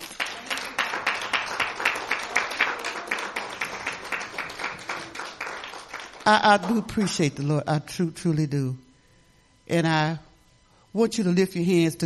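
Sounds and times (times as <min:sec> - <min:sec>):
audience clapping: 0:00.0 - 0:07.2
speech: 0:06.3 - 0:08.8, 0:09.7 - 0:10.3, 0:10.9 - 0:12.0.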